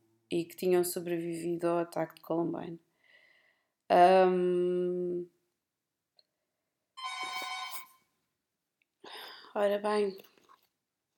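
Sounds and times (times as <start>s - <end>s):
speech: 0.3s - 2.8s, 3.9s - 5.4s, 9.6s - 10.3s
doorbell ringing: 7.0s - 8.0s.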